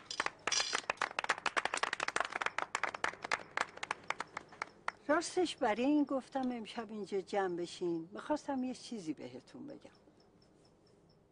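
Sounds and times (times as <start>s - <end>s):
small group clapping: 0.0s - 5.0s
speech: 5.1s - 10.0s.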